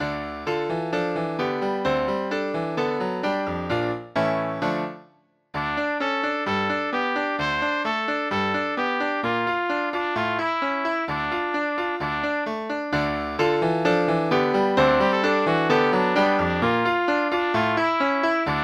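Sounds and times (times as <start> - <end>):
piano: 0.0 - 18.6
trumpet: 5.6 - 13.3, 14.8 - 18.6.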